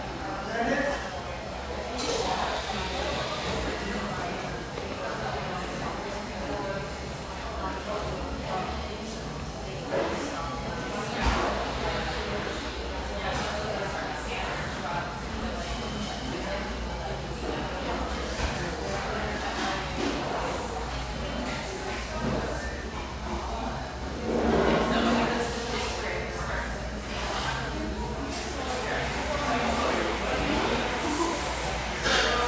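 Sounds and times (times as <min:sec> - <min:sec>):
coffeehouse murmur of voices in Laguna Beach, California: 0:00.0 - 0:32.4.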